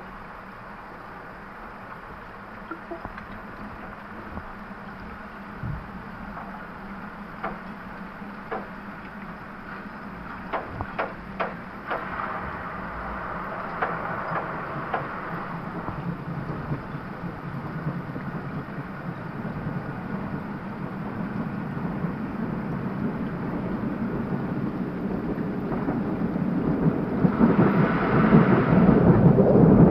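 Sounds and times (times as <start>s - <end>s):
Thames river in London: 0.0s - 29.8s
ghost knock: 10.5s - 12.1s.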